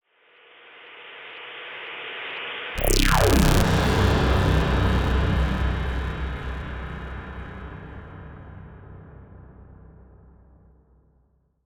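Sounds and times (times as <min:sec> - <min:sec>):
alien attack sound effects: 0:02.8 - 0:07.2
cosmic shockwave effect: 0:02.8 - 0:10.4.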